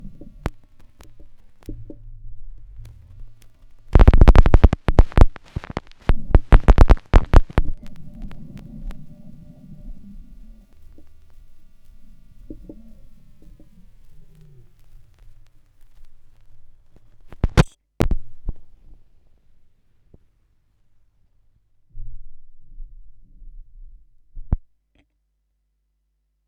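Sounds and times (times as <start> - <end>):
vinyl record noise: 0.0 - 20.3.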